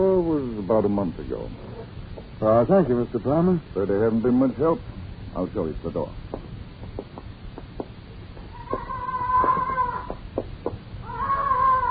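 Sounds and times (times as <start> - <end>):
speech: 0.7 - 1.8, 2.4 - 6.3
parrot squawking: 8.5 - 10.2, 11.0 - 11.8.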